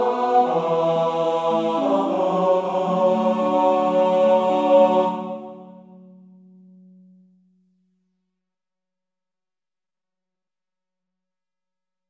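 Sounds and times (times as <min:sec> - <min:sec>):
tenor singing: 0:00.0 - 0:06.0.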